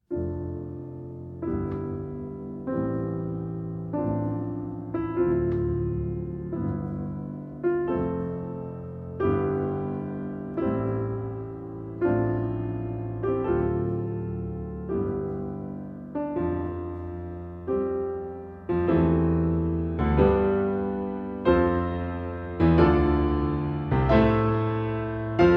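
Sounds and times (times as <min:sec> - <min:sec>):
classical prelude in C major: 0:00.0 - 0:25.5.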